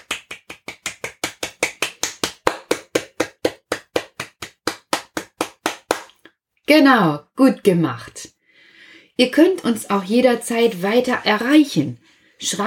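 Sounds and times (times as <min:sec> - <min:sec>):
single person clapping hands: 0:00.0 - 0:06.3
speech: 0:06.7 - 0:08.4, 0:09.2 - 0:12.6.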